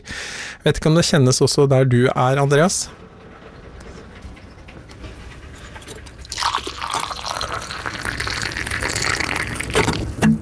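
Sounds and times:
speech: 0.6 - 3.0
coffee being poured into a cup: 6.2 - 10.1.

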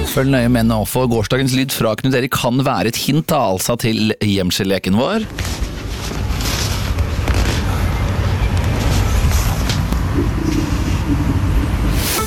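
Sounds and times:
speech: 0.2 - 5.6
strong wind howling outside a window: 5.3 - 12.2.

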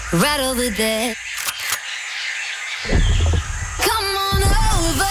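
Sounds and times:
speech: 0.1 - 1.4
elephant trampling someone sound effect: 2.9 - 5.0.

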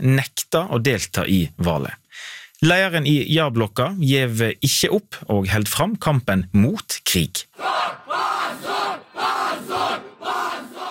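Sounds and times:
speech: 0.0 - 8.6
several hundred protesters chanting shame outside court: 7.6 - 10.9.

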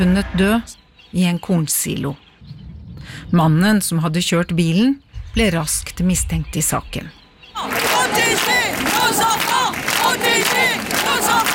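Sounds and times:
speech: 0.0 - 7.2
angry crowd shouting in protest: 7.6 - 11.5.

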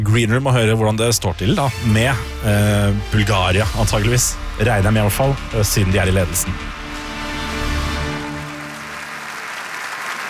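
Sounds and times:
speech: 0.1 - 6.8
fake applause: 8.3 - 10.2.

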